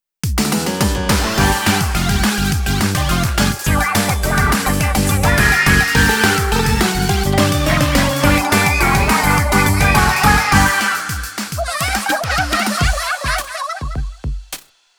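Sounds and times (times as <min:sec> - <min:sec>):
battle victory music: 0:00.4 - 0:11.6
laughter: 0:01.4 - 0:14.2.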